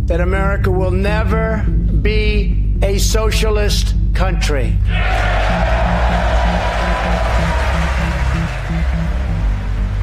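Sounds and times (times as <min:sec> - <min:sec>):
speech: 0:00.1 - 0:08.1
low voices shouting: 0:04.9 - 0:08.6
large crowd applauding and cheering: 0:04.9 - 0:10.0.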